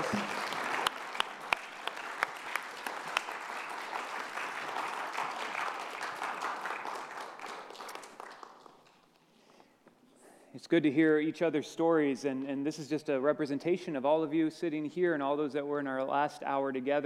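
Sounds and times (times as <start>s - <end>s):
audience applause: 0.0s - 9.0s
speech: 10.7s - 17.0s.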